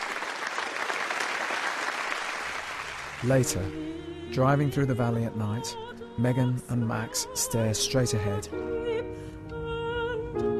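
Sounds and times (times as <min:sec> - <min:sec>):
audience applause after a performance: 0:00.0 - 0:03.7
speech: 0:03.2 - 0:09.5.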